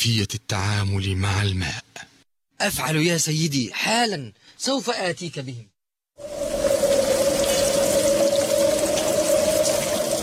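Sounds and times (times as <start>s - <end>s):
speech: 0.0s - 6.4s
heavy rain: 6.2s - 10.2s.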